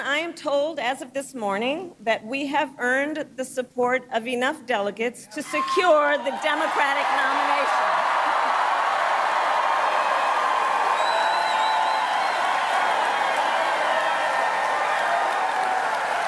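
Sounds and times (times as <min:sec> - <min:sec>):
speech: 0:00.2 - 0:08.0
rally crowd cheering: 0:05.5 - 0:16.2.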